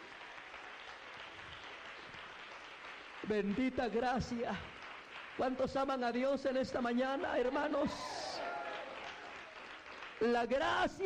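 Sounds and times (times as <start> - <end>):
audience applause: 0.0 - 11.0
speech: 3.2 - 4.8, 5.4 - 8.1, 10.2 - 11.0.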